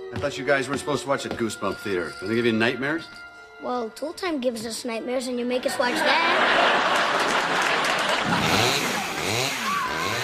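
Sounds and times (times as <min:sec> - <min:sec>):
speech: 0:00.1 - 0:09.6
laughter: 0:05.6 - 0:10.2
Benford 5100 chainsaw running: 0:08.2 - 0:10.2.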